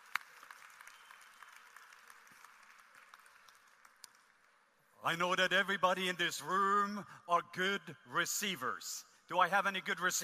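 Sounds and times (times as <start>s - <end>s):
audience applauding: 0.0s - 4.3s
speech: 5.0s - 10.2s.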